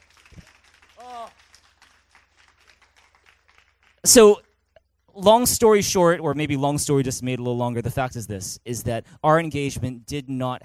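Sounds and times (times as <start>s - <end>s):
crowd clapping: 0.0s - 4.7s
person whooping: 1.0s - 1.4s
speech: 1.0s - 1.4s, 4.1s - 4.4s, 5.2s - 10.6s.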